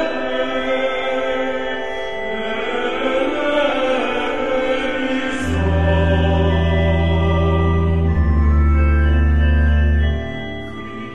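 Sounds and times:
chorus singing: 0.0s - 11.1s
baritone singing: 2.4s - 11.1s
organ playing: 3.6s - 11.1s.

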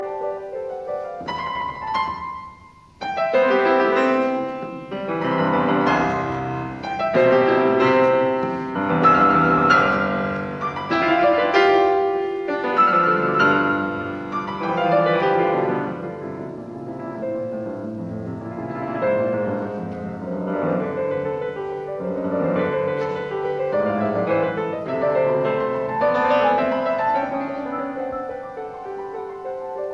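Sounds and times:
classical variations in C major on a waltz: 0.0s - 29.9s.

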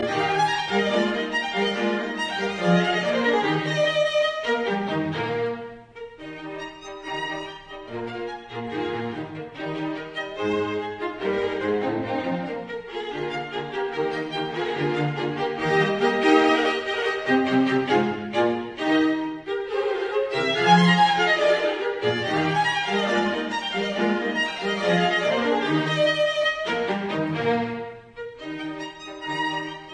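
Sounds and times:
string quartet in B-flat major: 0.0s - 29.9s.

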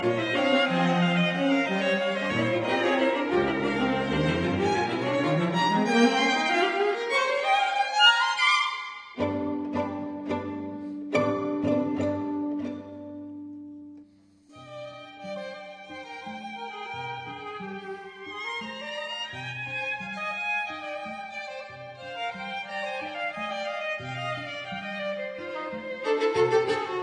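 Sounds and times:
string quartet playing moderately animated: 0.0s - 27.0s.

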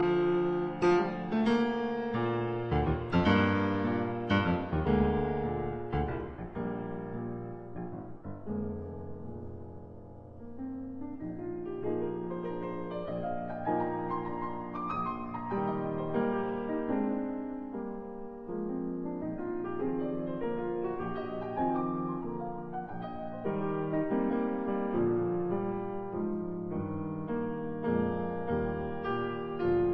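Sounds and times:
piano sonata finale in F sharp minor: 0.0s - 29.9s.

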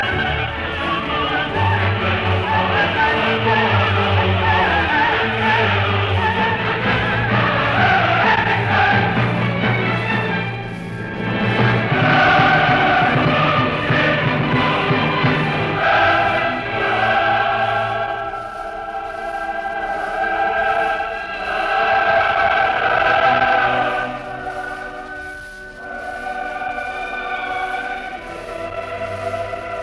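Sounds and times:
symphonic orchestra and choir in D minor: 0.0s - 29.8s.

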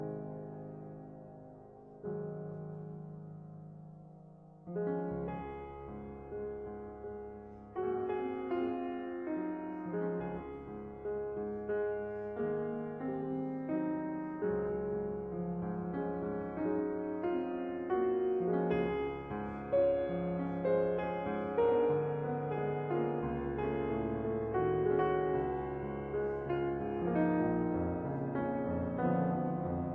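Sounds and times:
piano sonata in C sharp minor andante: 0.0s - 29.9s.

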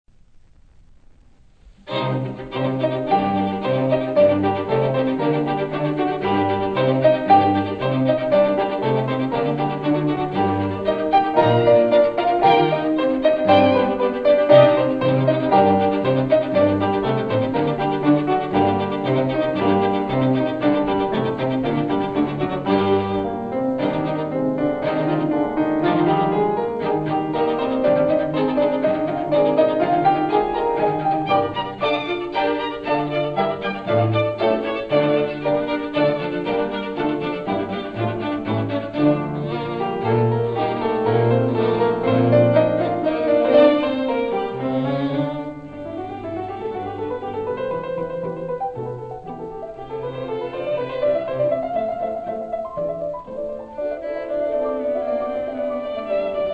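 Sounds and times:
piano quintet in E flat: 0.4s - 56.5s.

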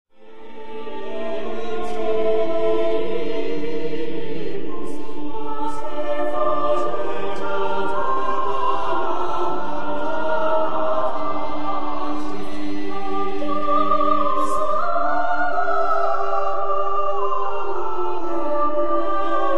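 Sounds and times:
four voices singing a mass: 0.2s - 19.5s.

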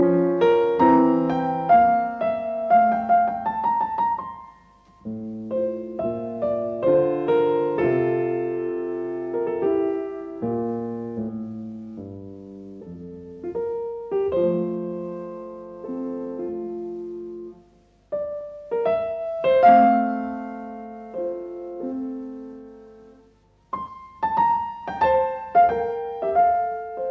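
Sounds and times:
piano sonata in C major: 0.0s - 27.0s.

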